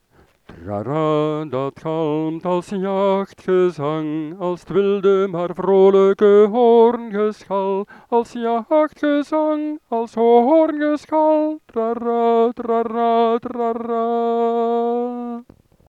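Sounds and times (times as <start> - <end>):
unison singing of an autumn song: 0.5 - 15.5.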